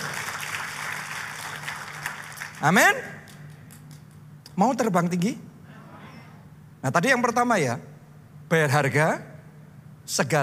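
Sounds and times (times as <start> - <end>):
crowd applause: 0.0 - 2.9
speech: 2.6 - 3.2, 4.6 - 5.5, 6.8 - 7.9, 8.5 - 9.3, 10.1 - 10.4.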